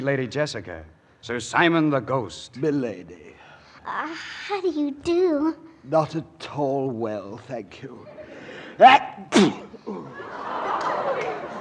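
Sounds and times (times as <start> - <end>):
speech: 0.0 - 8.2, 8.8 - 10.5
laughter: 8.0 - 8.6, 9.8 - 11.5
sneeze: 8.9 - 9.8.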